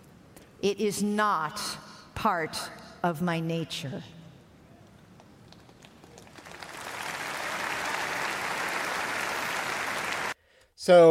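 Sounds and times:
speech: 0.6s - 4.2s, 10.9s - 11.0s
crowd applauding: 5.5s - 10.4s.

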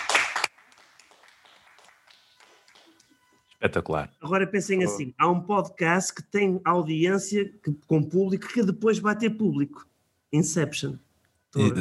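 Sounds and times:
small audience clapping: 0.0s - 3.4s
speech: 3.6s - 11.7s.

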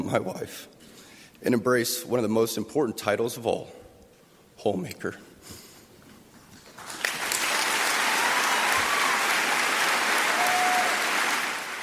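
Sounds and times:
speech: 0.1s - 0.8s, 1.4s - 3.8s, 4.6s - 5.6s
crowd applauding: 6.7s - 11.8s.

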